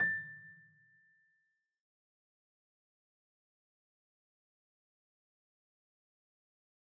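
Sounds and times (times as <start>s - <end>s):
piano sampler: 0.0s - 1.0s.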